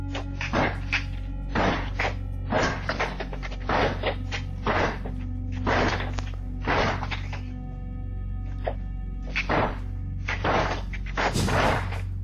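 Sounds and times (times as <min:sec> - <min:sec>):
man trying to break down a door: 0:00.1 - 0:07.5, 0:08.5 - 0:12.1.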